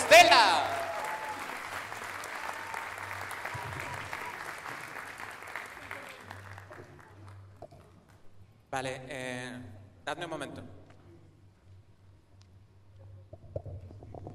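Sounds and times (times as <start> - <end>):
audience applause: 0.0 - 7.4
speech: 8.8 - 10.8.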